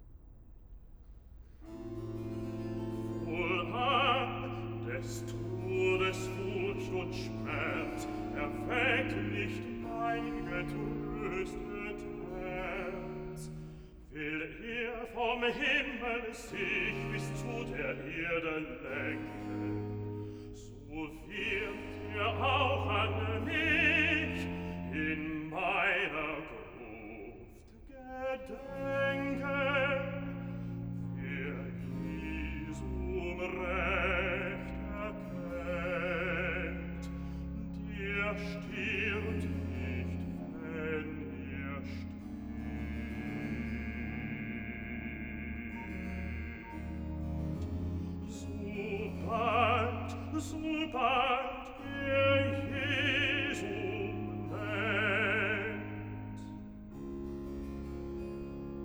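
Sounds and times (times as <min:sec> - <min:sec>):
bass singing cantata recitative: 0:01.6 - 0:58.8.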